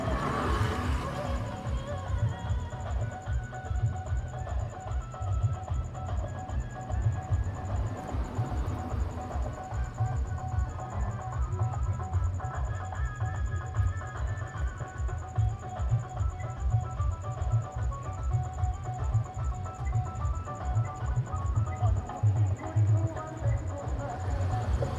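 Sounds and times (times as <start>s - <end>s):
distant drums on a street in South India: 0.0s - 24.9s.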